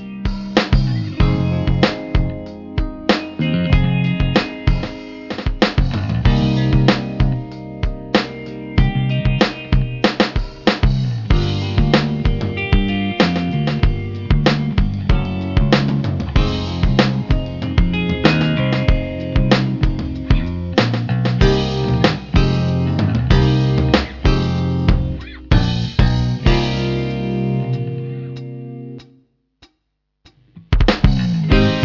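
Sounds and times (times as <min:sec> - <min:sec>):
stylish blues-based solo: 0:00.0 - 0:29.0, 0:30.6 - 0:31.8.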